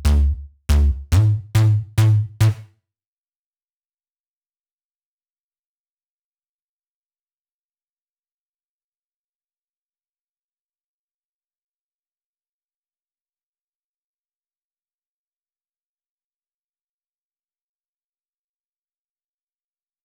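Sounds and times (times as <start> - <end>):
breakbeat with bass: 0.0 - 2.6.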